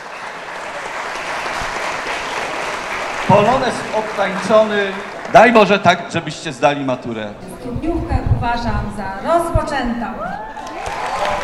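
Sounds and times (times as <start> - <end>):
loud applause from a large crowd: 0.0 - 6.8, 10.4 - 11.4
speech: 3.3 - 11.2.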